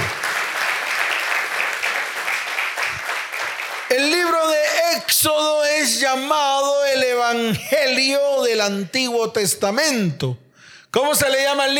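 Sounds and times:
audience applauding: 0.0s - 4.5s
speech: 5.1s - 11.7s.

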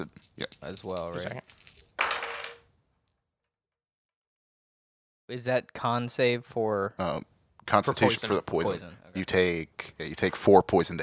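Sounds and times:
dice being rolled: 0.1s - 2.7s
speech: 0.4s - 1.6s, 5.3s - 11.0s.

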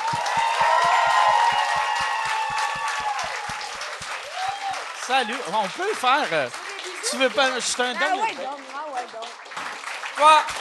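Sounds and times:
audience applause: 0.0s - 10.5s
speech: 5.1s - 8.7s, 10.2s - 10.5s.

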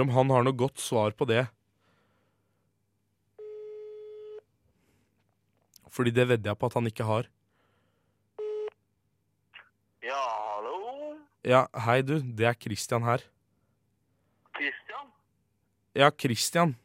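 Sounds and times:
speech: 0.0s - 1.6s, 5.9s - 7.4s, 11.4s - 13.4s, 16.0s - 16.8s
telephone ringing tone while placing a call: 3.4s - 4.4s, 8.4s - 8.8s.

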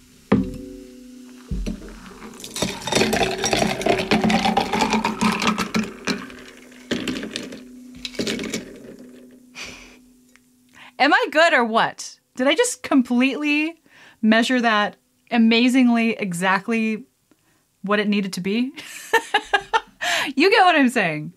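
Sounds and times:
unstrained cocktail poured with ice: 1.6s - 9.4s
speech: 11.0s - 17.1s, 17.8s - 19.4s, 20.2s - 21.3s.

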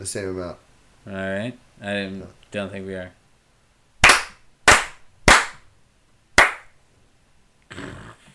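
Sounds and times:
speech: 0.0s - 3.2s
sharp loud hand claps: 4.0s - 5.7s, 6.4s - 6.8s.

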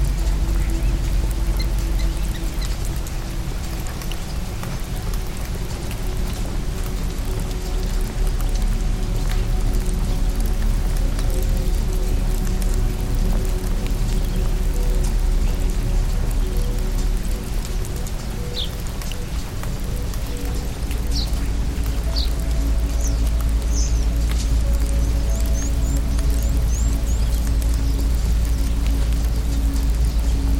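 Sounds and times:
rainstorm pouring: 0.0s - 30.5s.

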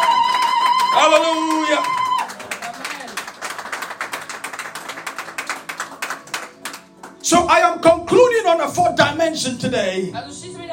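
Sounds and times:
audience clapping their hands: 0.0s - 7.6s
speech: 7.3s - 10.7s.

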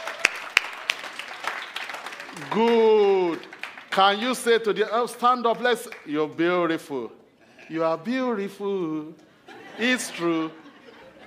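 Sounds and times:
audience clapping: 0.0s - 6.4s
speech: 2.4s - 2.9s, 4.0s - 9.2s, 9.8s - 10.6s
laughter: 9.3s - 11.2s.

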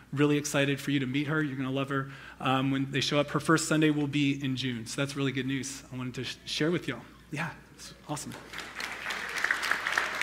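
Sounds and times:
speech: 0.1s - 8.7s
audience applause: 8.3s - 10.2s.

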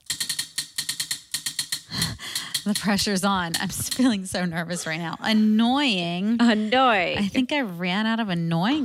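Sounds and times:
spinning prize wheel clicking: 0.0s - 4.4s
speech: 1.9s - 8.8s.

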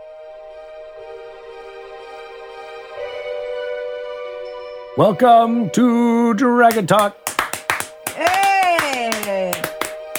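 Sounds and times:
speech: 5.0s - 7.2s
audience clapping: 6.7s - 10.1s.

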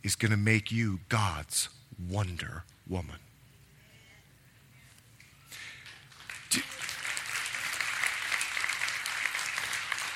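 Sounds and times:
speech: 0.0s - 3.3s
audience clapping: 5.5s - 10.1s.

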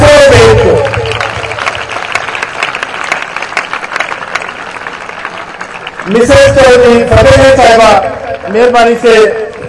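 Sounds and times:
audience applause: 0.1s - 7.4s
speech: 6.3s - 9.4s.

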